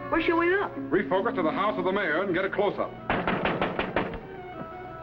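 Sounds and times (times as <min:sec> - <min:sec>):
speech: 0:00.2 - 0:03.1
knocking on a door: 0:03.1 - 0:04.5.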